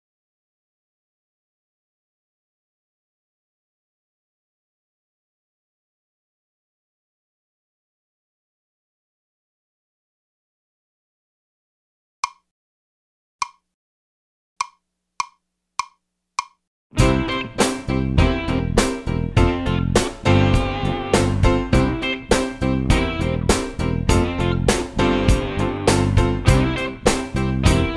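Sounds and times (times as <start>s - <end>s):
minor key music with descending bass: 17.0s - 27.9s.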